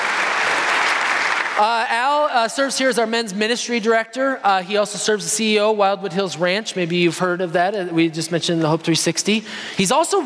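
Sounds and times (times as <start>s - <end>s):
audience applause: 0.0s - 1.6s
speech: 1.6s - 10.2s.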